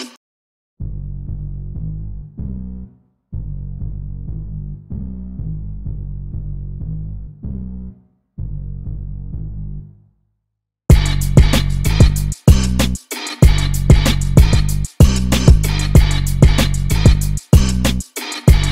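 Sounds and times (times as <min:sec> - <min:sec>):
instrumental music: 0:10.9 - 0:18.7.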